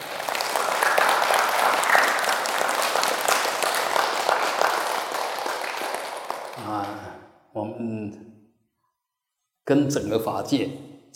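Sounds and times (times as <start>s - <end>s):
audience applause: 0.0s - 7.2s
speech: 7.8s - 8.4s, 9.7s - 11.1s.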